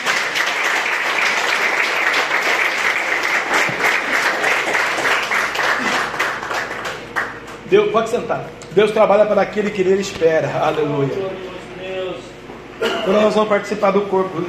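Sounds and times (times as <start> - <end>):
large audience applause: 0.0 - 7.5
speech: 7.7 - 11.5, 13.0 - 14.4.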